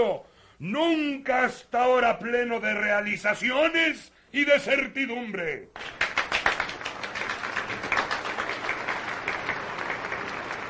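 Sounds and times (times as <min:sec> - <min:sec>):
speech: 0:00.0 - 0:06.2
applause after a speech: 0:05.7 - 0:10.6.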